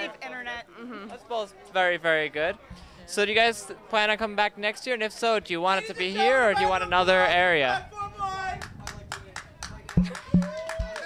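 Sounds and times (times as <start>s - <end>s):
speech: 1.2s - 8.0s
applause: 8.6s - 11.0s.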